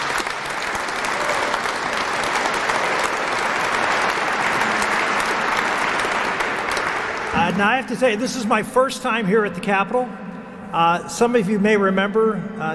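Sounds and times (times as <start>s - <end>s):
large audience applause: 0.0s - 7.5s
speech: 7.5s - 12.7s.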